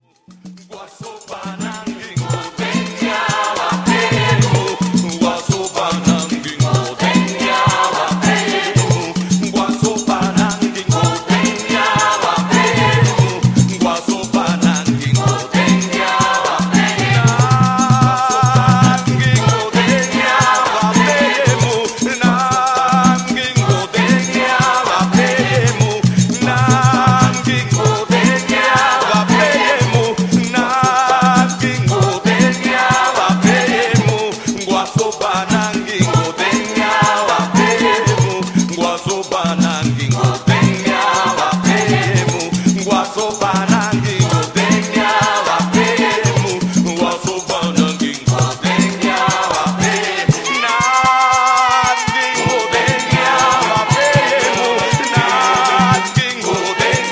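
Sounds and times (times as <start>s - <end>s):
merengue music: 0.1s - 57.0s.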